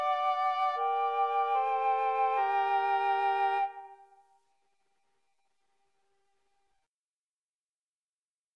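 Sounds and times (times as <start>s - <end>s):
oboe in a trio: 0.0s - 4.4s
clarinet in a trio: 0.0s - 4.6s
flute in a trio: 0.0s - 6.3s.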